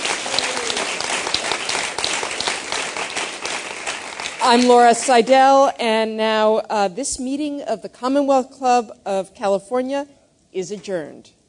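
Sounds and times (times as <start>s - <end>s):
audience clapping: 0.0s - 5.1s
speech: 4.5s - 11.4s.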